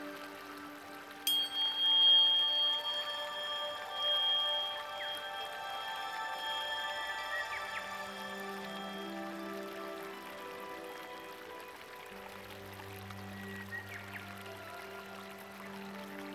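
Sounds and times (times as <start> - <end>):
tuning fork healing tones 741 and 528: 0.0 - 11.4.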